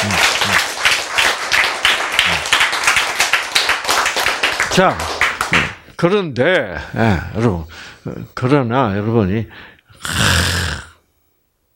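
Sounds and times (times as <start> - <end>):
audience clapping at a health lecture: 0.0 - 5.9
speech: 4.8 - 5.2, 6.0 - 10.3.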